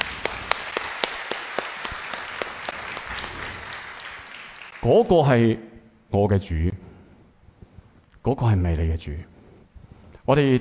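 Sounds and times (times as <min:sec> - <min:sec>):
audience applause: 0:00.0 - 0:04.9
speech: 0:04.8 - 0:06.8, 0:08.2 - 0:09.3, 0:10.3 - 0:10.5.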